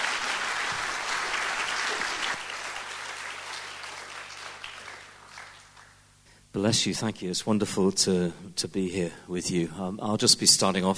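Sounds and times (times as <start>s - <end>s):
audience applause: 0.0s - 6.0s
speech: 6.6s - 10.9s.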